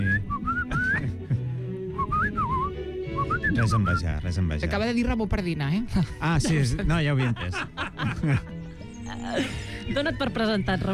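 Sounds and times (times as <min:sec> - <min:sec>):
person whistling goldfinch song imitation: 0:00.0 - 0:01.2, 0:01.9 - 0:04.0
speech: 0:03.6 - 0:08.5, 0:09.1 - 0:10.9
laughter: 0:06.0 - 0:10.0.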